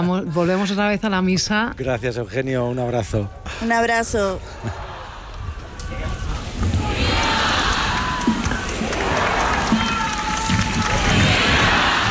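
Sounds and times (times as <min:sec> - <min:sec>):
speech: 0:00.0 - 0:04.9
crowd cheering and shouting vivas to the Pope: 0:04.6 - 0:12.0.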